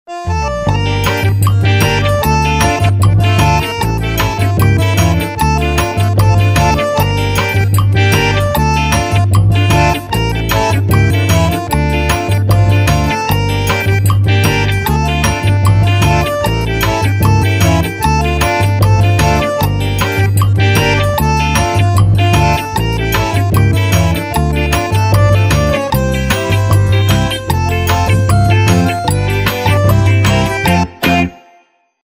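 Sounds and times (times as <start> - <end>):
forró music: 0.1 - 31.8.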